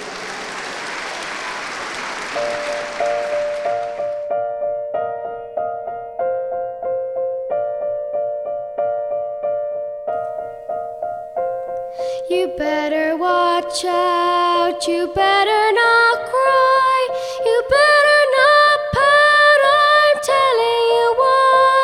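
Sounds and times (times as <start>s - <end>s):
crowd applause: 0.0s - 4.3s
bright bouncy piano introduction: 2.3s - 21.8s
speech: 13.8s - 17.1s.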